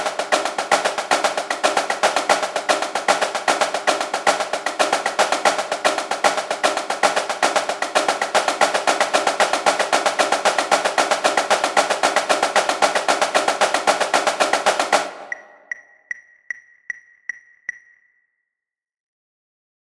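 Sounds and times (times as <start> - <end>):
sequence of snare drum flams: 0.0 - 15.4.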